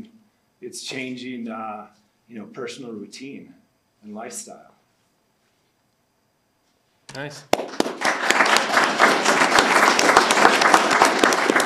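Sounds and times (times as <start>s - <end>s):
speech: 0.7s - 4.7s, 7.1s - 7.9s
people clapping: 7.5s - 11.6s.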